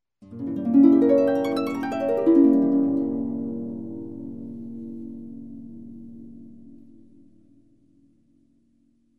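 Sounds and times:
harp melody rising and falling: 0.3 - 5.2.

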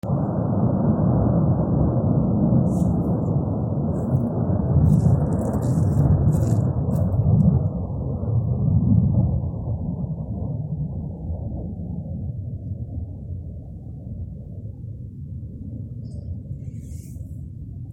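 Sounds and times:
explosion at night during an air attack: 0.0 - 12.2.

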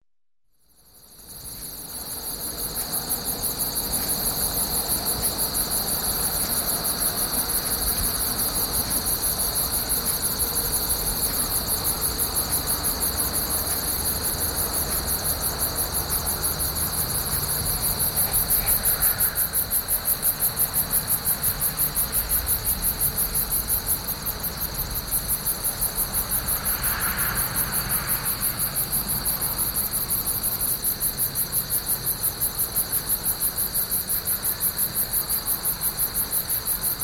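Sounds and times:
crickets chirping: 0.6 - 37.0
background traffic: 1.2 - 32.5.

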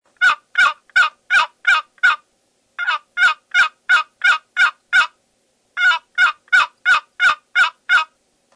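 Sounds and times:
turkey calling loudly and actively: 0.2 - 2.2, 2.8 - 5.2, 5.8 - 8.2.

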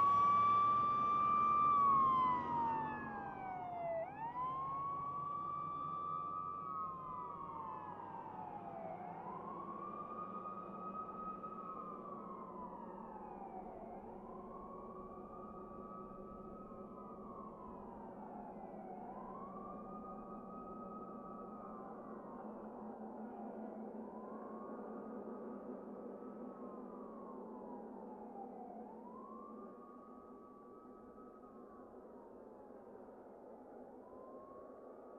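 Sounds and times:
fire engine moving away with siren: 0.0 - 32.9.

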